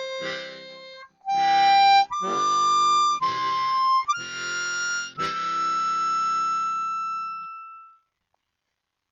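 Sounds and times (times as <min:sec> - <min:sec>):
Suzuki Chromatic SCX-48 and Suzuki Chord SCH-24 harmonica melody: 0:00.0 - 0:08.1.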